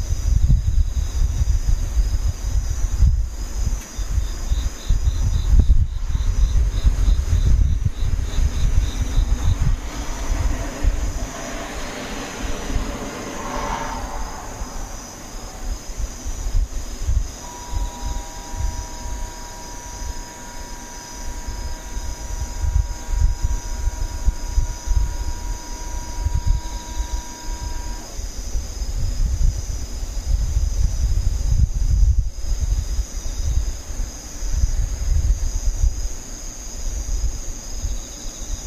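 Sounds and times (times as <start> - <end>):
low gusty rumble: 0.0 - 36.2
steady mid-pitched hum: 0.0 - 36.2
insects buzzing in a shrill chorus: 0.0 - 38.6
vehicle passing: 8.7 - 16.2.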